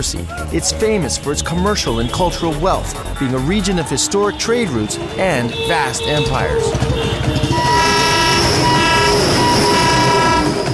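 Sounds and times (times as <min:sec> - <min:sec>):
speech: 0:00.0 - 0:07.8
rail carriages rolling past: 0:03.3 - 0:10.7
Indian train horn: 0:04.1 - 0:10.7.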